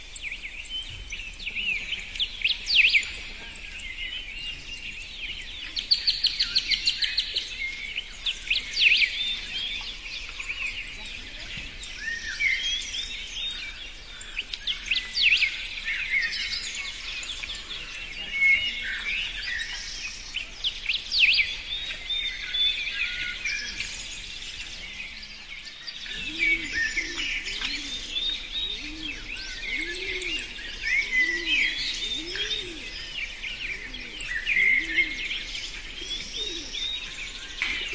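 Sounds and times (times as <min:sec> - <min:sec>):
birds singing: 0:00.0 - 0:37.9
dove cooing: 0:26.1 - 0:37.9.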